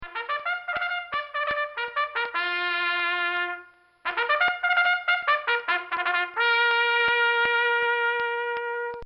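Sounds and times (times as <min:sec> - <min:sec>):
bugle call: 0:00.0 - 0:09.0.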